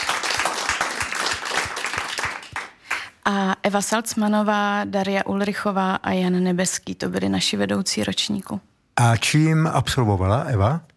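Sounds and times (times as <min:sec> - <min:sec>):
audience applause: 0:00.0 - 0:03.1
speech: 0:03.2 - 0:10.9.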